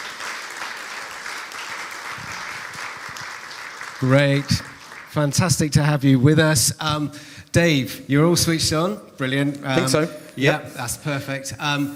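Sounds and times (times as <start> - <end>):
crowd applauding: 0.0 - 5.4
speech: 4.0 - 11.9.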